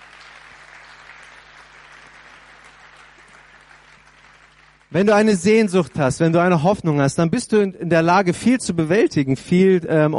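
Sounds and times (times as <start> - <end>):
audience applause: 0.0 - 5.0
speech: 4.9 - 10.1.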